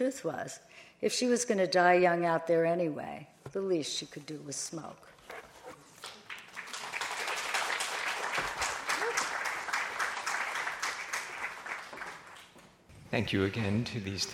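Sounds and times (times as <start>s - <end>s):
speech: 0.0s - 5.1s, 13.2s - 14.3s
audience applause after readings: 6.0s - 12.6s.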